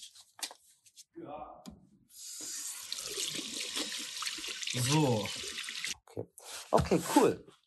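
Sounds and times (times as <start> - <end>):
water running from a tap into a sink during handwashing with soap: 2.5 - 5.9
speech: 4.7 - 5.4, 6.7 - 7.5.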